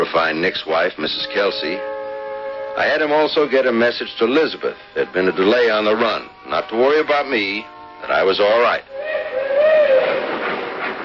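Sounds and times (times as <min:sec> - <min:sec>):
speech: 0:00.2 - 0:02.0, 0:02.8 - 0:09.2
train whistle: 0:01.1 - 0:03.4, 0:08.9 - 0:10.3.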